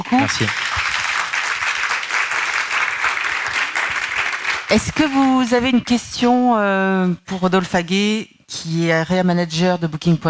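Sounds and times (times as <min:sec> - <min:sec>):
audience applause: 0:00.0 - 0:05.5
speech: 0:00.1 - 0:00.9, 0:04.7 - 0:10.2.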